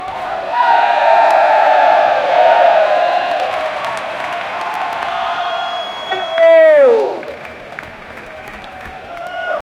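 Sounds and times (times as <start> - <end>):
NFL fans cheering in stadium: 0.0 - 9.6.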